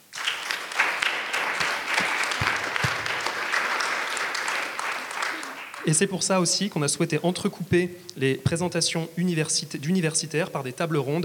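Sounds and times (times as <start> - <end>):
audience applause: 0.0 - 6.0
speech: 5.8 - 11.2.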